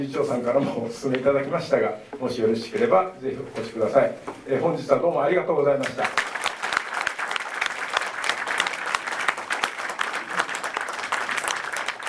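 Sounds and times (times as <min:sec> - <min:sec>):
speech: 0:00.0 - 0:06.3
audience applause: 0:06.0 - 0:12.0.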